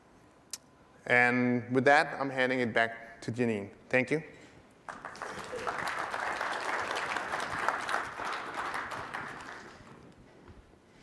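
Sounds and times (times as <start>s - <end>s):
speech: 1.0s - 5.1s
audience applause: 4.9s - 10.1s.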